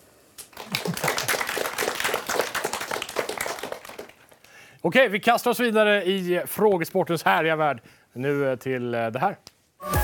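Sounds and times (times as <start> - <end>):
applause: 0.4 - 4.6
laughter: 0.7 - 1.6
speech: 4.8 - 10.0.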